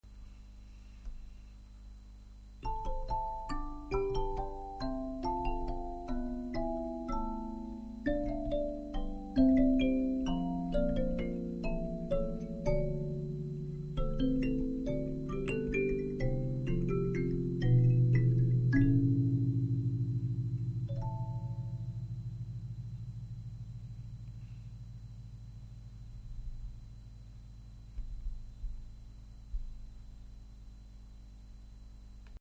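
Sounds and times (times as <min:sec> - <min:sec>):
kalimba: 0:02.6 - 0:27.1.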